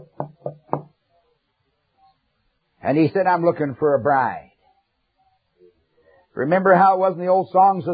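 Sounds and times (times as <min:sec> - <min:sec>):
firm knocking on a door: 0:00.0 - 0:01.0
speech: 0:02.8 - 0:04.5, 0:06.4 - 0:07.9.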